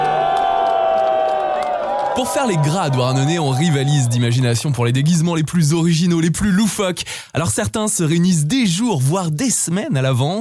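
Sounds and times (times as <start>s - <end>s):
audience applause: 0.0s - 5.0s
speech: 2.2s - 10.3s.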